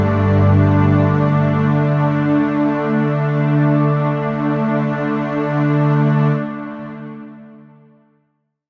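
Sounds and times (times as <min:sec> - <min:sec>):
underscore synth pad: 0:00.0 - 0:06.4.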